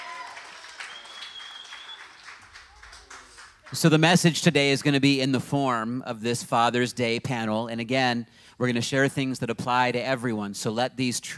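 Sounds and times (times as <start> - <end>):
audience clapping at a Father's Day gathering: 0.0 - 5.0
speech: 3.7 - 11.3.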